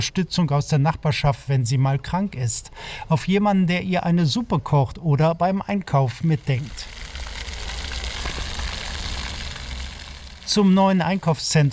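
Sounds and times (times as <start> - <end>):
speech: 0.0 - 7.0, 10.5 - 11.7
water splashing in a flat fountain field: 5.9 - 11.7.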